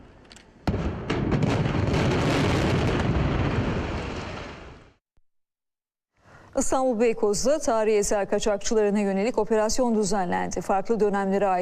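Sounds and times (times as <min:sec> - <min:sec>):
dynamite charges detonating in controlled demolition of a 48-year-old building: 0:00.6 - 0:05.0
speech: 0:06.6 - 0:11.6.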